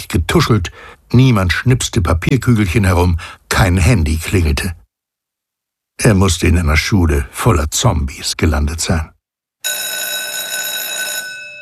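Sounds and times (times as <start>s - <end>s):
speech: 0.1s - 4.8s, 6.0s - 9.8s
school break bell ringing: 9.6s - 11.6s.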